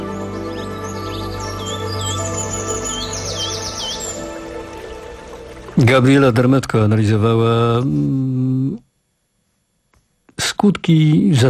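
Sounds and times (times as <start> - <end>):
birds singing: 0.0 - 6.2
speech: 5.8 - 8.8, 10.6 - 11.4.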